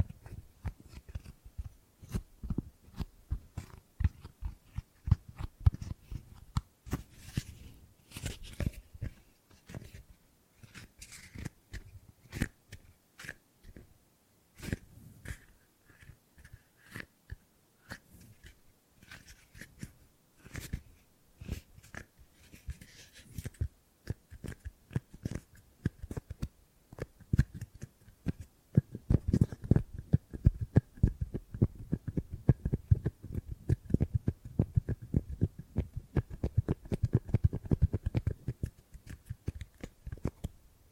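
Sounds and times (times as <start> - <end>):
gripping and grabbing sounds: 0.0 - 13.9, 14.6 - 40.6.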